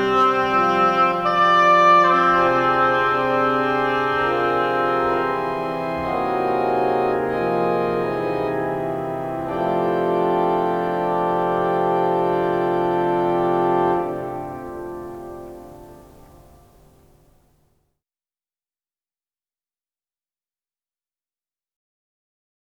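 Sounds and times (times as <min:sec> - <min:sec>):
oboe playing variations: 0:00.0 - 0:16.3.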